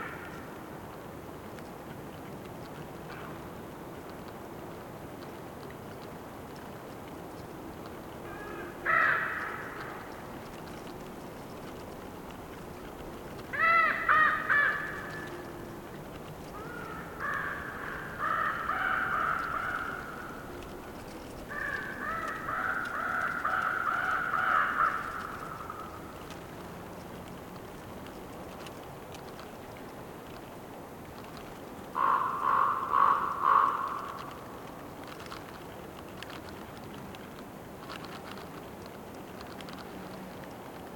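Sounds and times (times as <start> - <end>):
wind: 0.0 - 40.9
bird croaking: 8.3 - 10.3, 13.5 - 15.9, 16.5 - 20.9, 21.5 - 26.1, 32.0 - 34.7.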